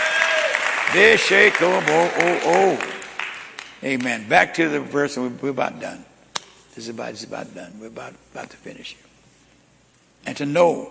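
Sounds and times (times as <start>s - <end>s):
audience clapping: 0.0s - 4.3s
speech: 0.9s - 3.0s, 3.8s - 6.1s, 6.8s - 9.1s, 10.2s - 10.8s.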